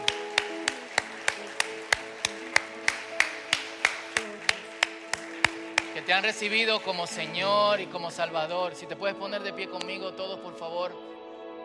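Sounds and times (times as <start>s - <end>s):
audience clapping in rhythm: 0.0s - 7.8s
speech: 6.1s - 11.1s.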